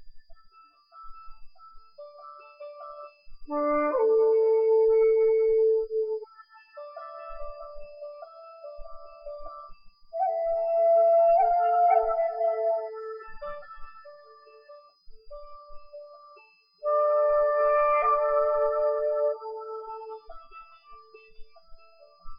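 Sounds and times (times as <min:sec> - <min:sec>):
Japanese flute: 0:02.0 - 0:16.1, 0:16.8 - 0:22.3.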